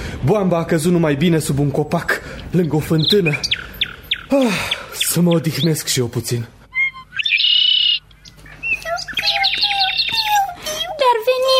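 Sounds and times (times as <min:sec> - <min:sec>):
speech: 0:00.2 - 0:03.5, 0:04.3 - 0:06.6
baby birds chirping in a nest: 0:02.4 - 0:06.0, 0:06.7 - 0:11.5.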